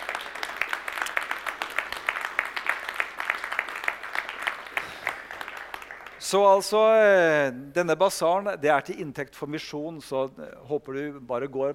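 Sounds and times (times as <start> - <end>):
audience applause: 0.0 - 6.4
speech: 6.3 - 11.7.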